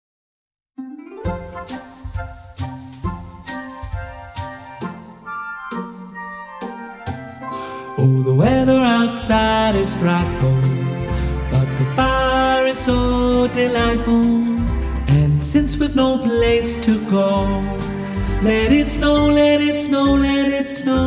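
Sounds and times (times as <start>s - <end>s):
tenor singing: 7.5s - 21.0s.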